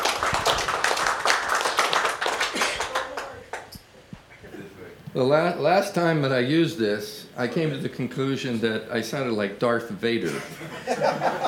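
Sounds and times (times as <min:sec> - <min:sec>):
crowd applause: 0:00.0 - 0:03.7
speech: 0:05.2 - 0:11.4
laughter: 0:10.2 - 0:11.4.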